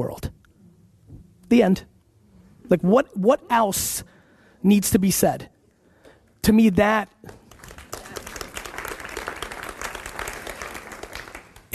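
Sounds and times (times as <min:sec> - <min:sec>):
speech: 0:00.0 - 0:00.4, 0:01.5 - 0:01.9, 0:02.7 - 0:05.5, 0:06.4 - 0:07.4
audience clapping: 0:07.2 - 0:11.7.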